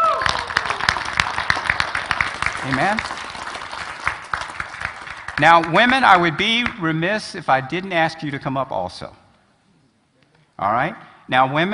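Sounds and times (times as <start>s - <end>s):
audience clapping hands: 0.0s - 6.8s
speech: 2.6s - 3.2s, 5.4s - 9.2s, 10.6s - 11.7s.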